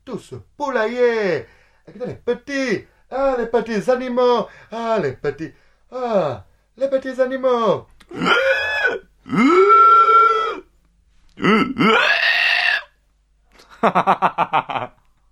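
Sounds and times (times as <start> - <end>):
speech: 0.1 - 8.6, 9.3 - 9.7, 11.4 - 12.1, 13.8 - 15.0
person imitating pig grunts and oinks: 8.0 - 10.6, 11.4 - 12.9.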